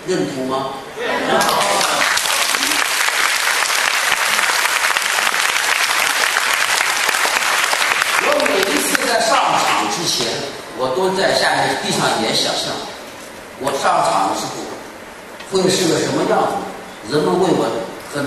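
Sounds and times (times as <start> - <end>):
speech: 0.0 - 1.6, 10.1 - 13.0, 13.6 - 14.8, 15.5 - 18.2
audience applause and cheering: 1.4 - 9.2.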